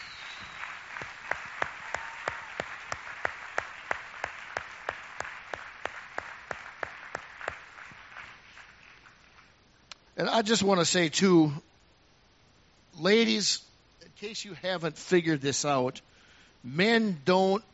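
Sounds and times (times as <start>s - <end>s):
audience applause for fathers: 0.0s - 9.4s
speech: 10.2s - 11.7s, 13.0s - 17.7s.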